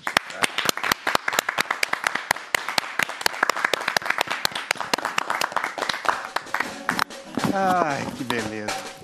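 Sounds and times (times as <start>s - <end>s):
audience applause: 0.0s - 7.0s
speech: 7.6s - 8.8s.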